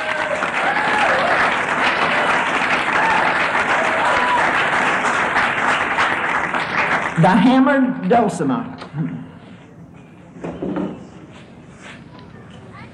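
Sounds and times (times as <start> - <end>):
audience applause: 0.0 - 7.4
speech: 7.2 - 9.3.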